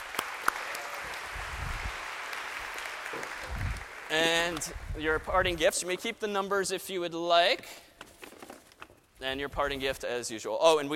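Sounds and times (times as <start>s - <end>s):
round of applause: 0.0s - 4.9s
speech: 4.1s - 7.9s, 9.2s - 10.9s.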